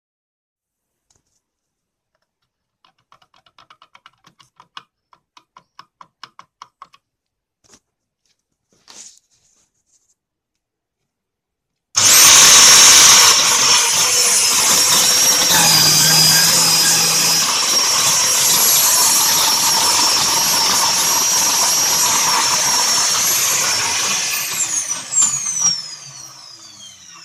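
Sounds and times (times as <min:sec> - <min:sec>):
vacuum cleaner motor: 0:12.0 - 0:27.2.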